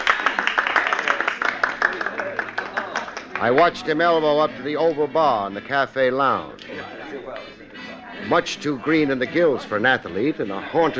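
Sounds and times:
tennis gallery applause: 0:00.0 - 0:05.2
laughter: 0:00.0 - 0:10.9
speech: 0:03.4 - 0:07.6, 0:08.3 - 0:10.9.

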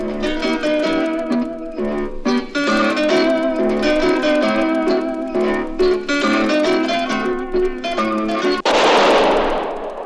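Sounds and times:
plucked string music: 0:00.0 - 0:08.6
gunshot in a radio drama: 0:08.6 - 0:10.0.

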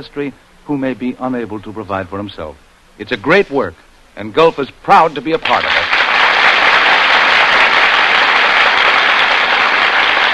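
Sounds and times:
speech: 0:00.0 - 0:06.0
studio audience applause: 0:05.4 - 0:10.3.

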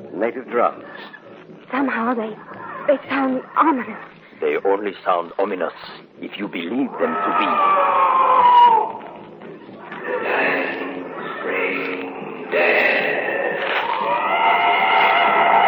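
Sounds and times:
speech: 0:00.2 - 0:08.0
laughter: 0:02.2 - 0:04.4
wounded animal screaming: 0:06.8 - 0:09.2, 0:09.8 - 0:15.6.

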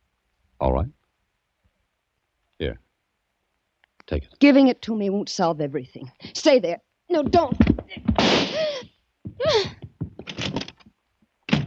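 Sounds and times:
speech: 0:00.6 - 0:01.0, 0:02.6 - 0:02.8, 0:04.1 - 0:08.8
door slamming shut: 0:10.2 - 0:10.8, 0:11.5 - 0:11.6.

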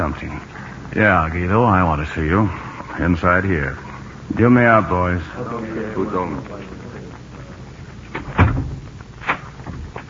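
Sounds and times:
speech: 0:00.0 - 0:06.8
murmur of voices: 0:02.3 - 0:07.9
door shutting: 0:08.1 - 0:10.0.

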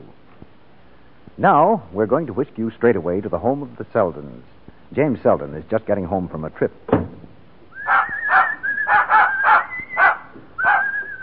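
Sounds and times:
speech: 0:01.4 - 0:07.1
dog whimpering: 0:07.8 - 0:11.2
dog barking: 0:07.9 - 0:10.9.

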